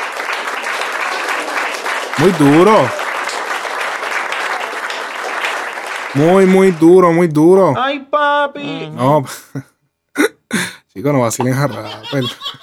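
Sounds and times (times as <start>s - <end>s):
audience applause: 0.0s - 7.4s
speech: 2.2s - 3.0s, 6.1s - 9.7s, 11.0s - 12.6s
laughter: 11.4s - 12.6s.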